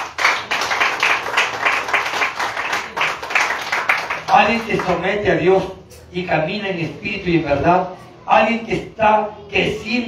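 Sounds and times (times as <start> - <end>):
audience clapping: 0.0 - 5.1
speech: 4.4 - 10.0.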